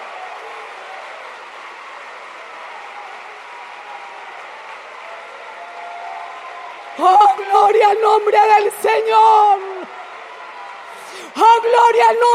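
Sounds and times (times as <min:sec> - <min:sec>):
audience applauding: 0:00.0 - 0:12.3
speech: 0:07.0 - 0:10.0, 0:11.4 - 0:12.3.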